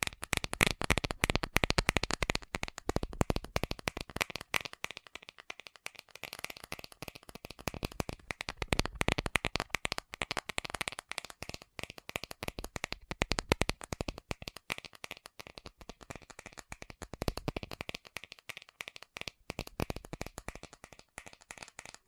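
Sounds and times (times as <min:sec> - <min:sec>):
fast tapping: 0:00.0 - 0:22.0.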